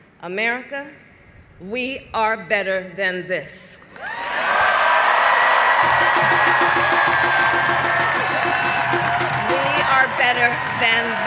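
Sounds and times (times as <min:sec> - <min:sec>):
speech: 0:00.2 - 0:04.2, 0:10.3 - 0:11.2
rally crowd cheering: 0:04.0 - 0:11.2.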